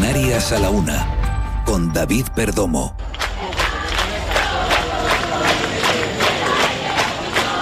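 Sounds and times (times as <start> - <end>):
speech: 0.2 - 3.1
protesters chanting in a city square: 3.1 - 7.6.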